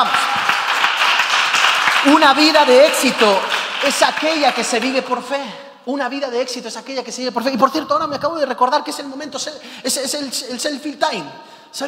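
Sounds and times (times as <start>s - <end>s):
audience clapping loudly: 0.0s - 5.5s
speech: 2.0s - 11.8s.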